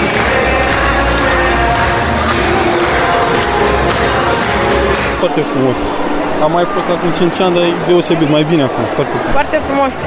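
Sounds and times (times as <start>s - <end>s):
audience applauding at a dolphin show: 0.0s - 5.7s
speech: 5.2s - 10.0s.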